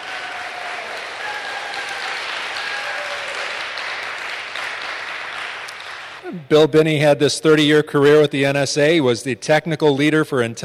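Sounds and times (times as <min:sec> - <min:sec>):
audience applause: 0:00.0 - 0:06.2
speech: 0:06.3 - 0:10.6.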